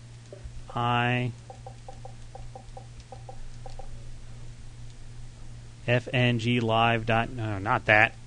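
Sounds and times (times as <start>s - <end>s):
low hum: 0.0s - 8.2s
speech: 0.3s - 1.5s, 5.9s - 8.2s
typing on an Xbox chat pad keyboard: 1.4s - 3.9s.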